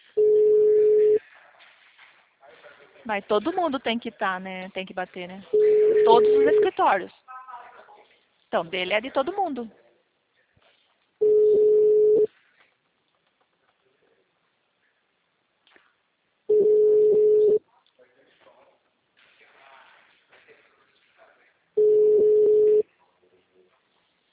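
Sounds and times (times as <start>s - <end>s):
phone ringback tones: 0.2s - 1.2s, 5.5s - 6.8s, 11.2s - 12.3s, 16.5s - 17.6s, 21.8s - 22.8s
speech: 3.1s - 7.2s, 8.5s - 9.8s.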